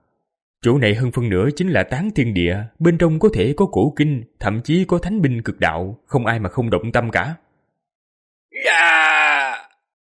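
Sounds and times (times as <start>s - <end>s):
speech: 0.6s - 7.4s
man screaming in terror: 8.6s - 9.8s.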